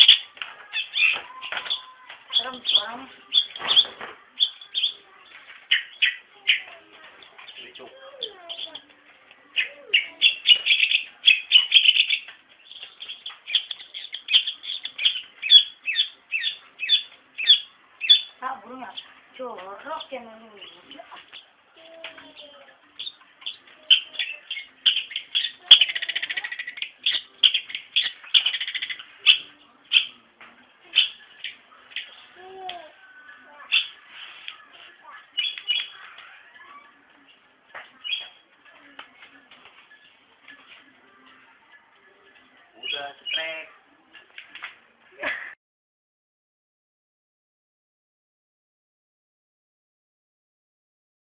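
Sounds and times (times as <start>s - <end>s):
bird chirping song: 0.0s - 30.2s, 30.8s - 38.4s, 39.7s - 43.8s.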